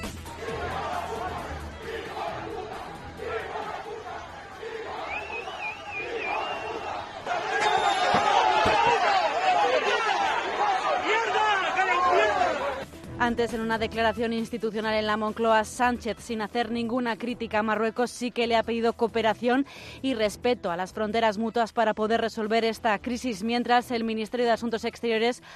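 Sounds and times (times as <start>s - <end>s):
crowd shouting insults: 0.3s - 12.8s
speech: 13.4s - 25.5s.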